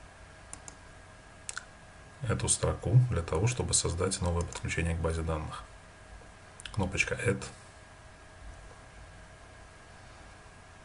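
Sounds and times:
mouse clicks in a Windows C# application: 0.5 - 0.8, 4.2 - 4.7
speech: 2.2 - 5.7, 6.8 - 7.6.

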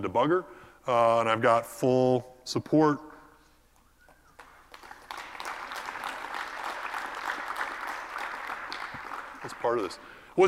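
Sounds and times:
speech: 0.0 - 3.1, 9.6 - 10.4
audience clapping: 4.4 - 10.2.

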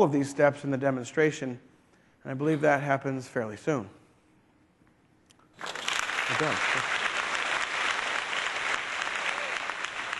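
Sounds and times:
speech: 0.0 - 4.0, 5.6 - 7.0
audience applause: 5.6 - 10.1.

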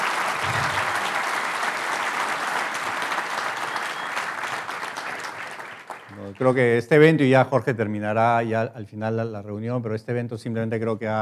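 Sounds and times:
audience applause: 0.0 - 7.1
speech: 6.4 - 11.2.

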